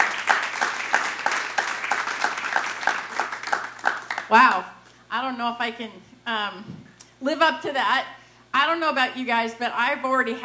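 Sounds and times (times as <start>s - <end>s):
Ridgepoint Church congregation applauding a guest: 0.0s - 4.6s
speech: 4.3s - 10.4s.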